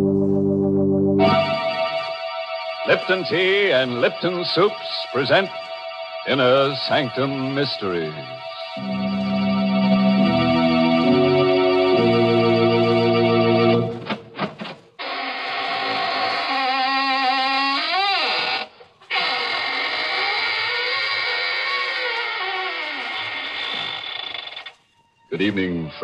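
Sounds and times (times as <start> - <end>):
organ chords: 0.0 - 14.4
squeaking door creaking open: 1.2 - 8.9, 15.0 - 26.0
speech: 2.9 - 5.7, 6.3 - 9.0, 25.5 - 26.0.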